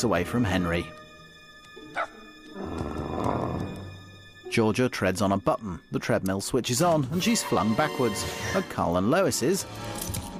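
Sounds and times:
speech: 0.0 - 1.0, 4.5 - 10.2
massive dog growling at a tiny dog: 2.0 - 3.9.

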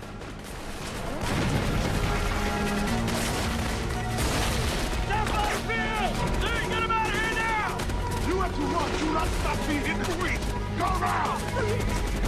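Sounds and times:
grenade blasts in a battle: 0.4 - 10.6
gunfire in a battle: 0.4 - 12.2
voices over the din: 5.0 - 12.2.

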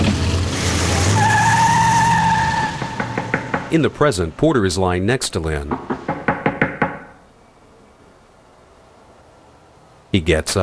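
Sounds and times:
car tires squealing as it drives off: 0.3 - 4.0
speech: 3.7 - 6.1, 10.1 - 10.6.

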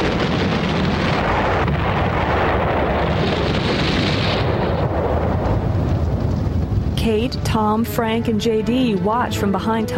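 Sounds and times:
gasoline tank exploding into fire, roaring and rumbling: 0.0 - 7.8
fire crackling from exploded gasoline tank: 0.0 - 9.0
speech: 7.1 - 9.9.

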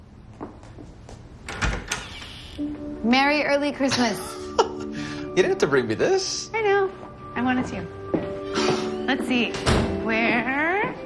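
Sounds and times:
soft footsteps: 0.3 - 1.4, 6.8 - 10.0
door latch clunk and rattle: 1.5 - 2.2
apartment door creaking open: 1.5 - 2.7
speech: 2.6 - 4.4, 5.4 - 8.0, 9.1 - 10.6.

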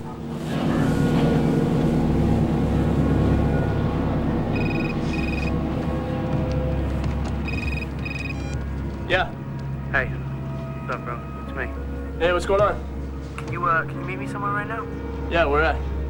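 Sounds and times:
Coast Guard vessel engine droning: 0.0 - 16.0
phone electronic ring: 4.5 - 5.6, 7.2 - 8.7
speech: 12.5 - 12.9, 13.6 - 15.9.

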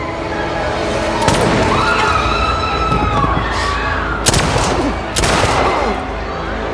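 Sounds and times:
constant noisy backdrop: 0.0 - 6.7
gunshots: 4.2 - 6.2.

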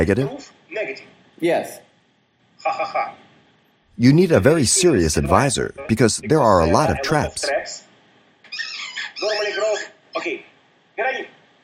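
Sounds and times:
speech: 0.0 - 0.6, 1.4 - 1.9, 2.6 - 3.3, 4.0 - 7.9, 8.6 - 11.4
dog playing with a squeaky toy: 8.5 - 10.0.

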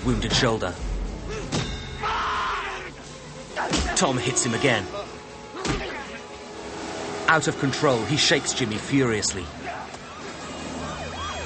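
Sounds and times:
speech: 0.0 - 0.9, 3.7 - 5.1, 7.3 - 9.8
police car siren wailing: 2.0 - 11.4
loud traffic noise: 3.0 - 11.4.

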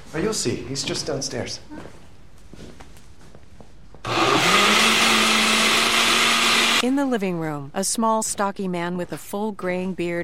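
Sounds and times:
speech: 0.1 - 2.0, 6.8 - 10.2
juicer blending fruit: 4.1 - 6.8.

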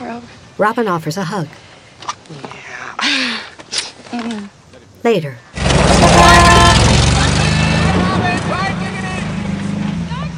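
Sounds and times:
speech: 0.6 - 1.7, 4.1 - 6.9
car driving off from a cottage: 5.5 - 10.3.

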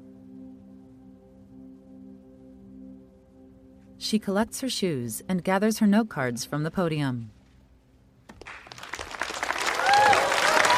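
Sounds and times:
speech: 4.0 - 7.4
applause from competitors at a speaking contest: 8.3 - 10.7.

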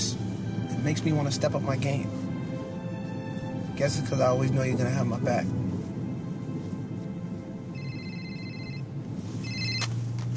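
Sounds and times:
steady low hum: 0.0 - 10.3
speech: 0.8 - 2.2, 3.8 - 5.6
telephone ringing with an electronic trill: 7.7 - 10.3.

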